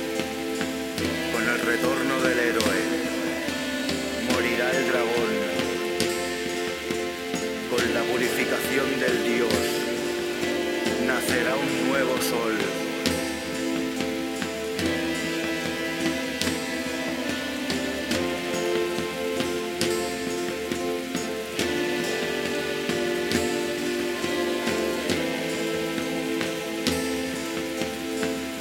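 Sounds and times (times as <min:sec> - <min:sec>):
steady heavy rain: 0:00.0 - 0:28.5.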